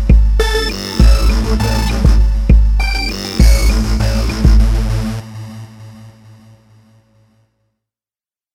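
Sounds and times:
dubstep hip hop music: 0.0 - 5.2.

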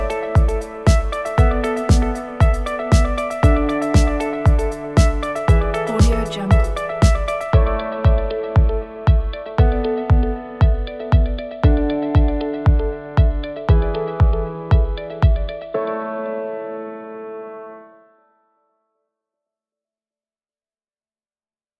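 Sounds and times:
upbeat corporate music: 0.0 - 15.7.

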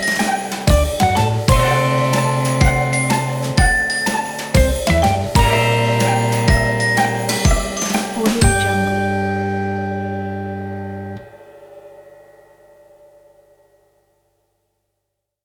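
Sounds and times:
vintage Christmas music: 0.0 - 12.1.

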